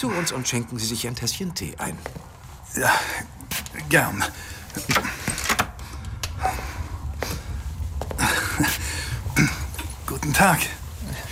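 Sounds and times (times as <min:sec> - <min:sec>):
speech: 0:00.0 - 0:05.2, 0:10.3 - 0:10.8
rustling and shuffling movement: 0:00.0 - 0:11.3
door swinging shut with latch and handle clicks: 0:04.8 - 0:05.8.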